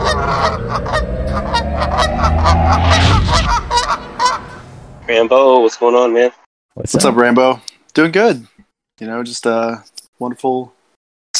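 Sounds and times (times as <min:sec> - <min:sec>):
flock of geese honking: 0:00.0 - 0:04.6
speech: 0:05.2 - 0:10.8.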